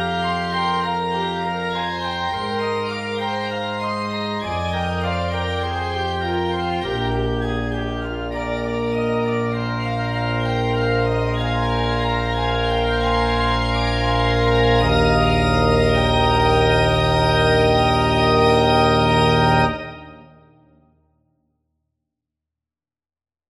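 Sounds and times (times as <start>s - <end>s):
organ playing a prelude: 0.0s - 20.6s.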